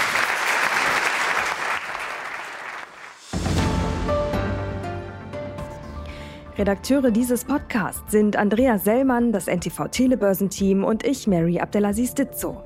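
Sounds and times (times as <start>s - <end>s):
audience applause: 0.0s - 3.4s
music with sustained tonal notes and low bass line: 3.2s - 12.6s
speech: 6.6s - 12.6s.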